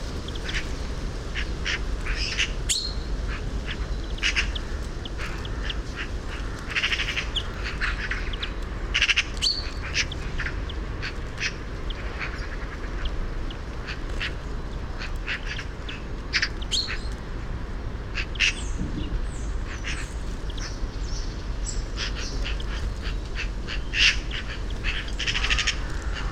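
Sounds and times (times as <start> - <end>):
Eurasian magpie harsh rattling chatter calls: 0.2 - 17.2, 18.1 - 26.3.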